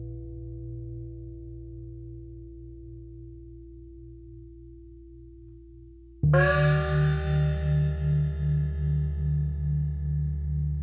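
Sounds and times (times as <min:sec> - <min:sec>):
gong blues: 0:06.3 - 0:10.7.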